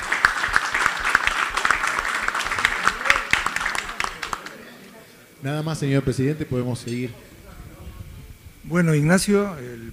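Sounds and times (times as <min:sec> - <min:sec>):
audience applause: 0:00.0 - 0:04.8
speech: 0:05.4 - 0:07.3, 0:08.7 - 0:09.9.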